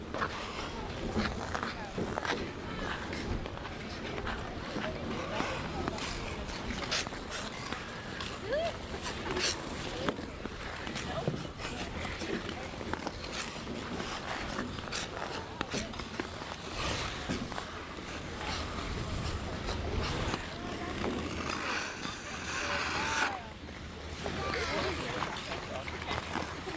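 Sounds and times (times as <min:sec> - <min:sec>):
ice skating in winter in Toronto Canada: 0:00.0 - 0:26.7.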